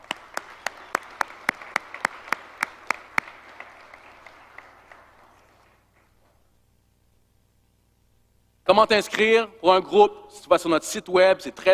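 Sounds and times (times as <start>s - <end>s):
audience applause: 0.0s - 5.9s
speech: 8.7s - 11.7s.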